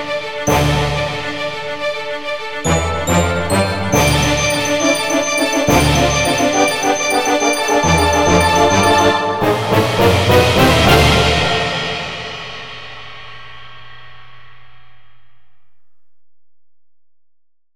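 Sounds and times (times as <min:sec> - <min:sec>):
small orchestra playing: 0:00.0 - 0:12.2.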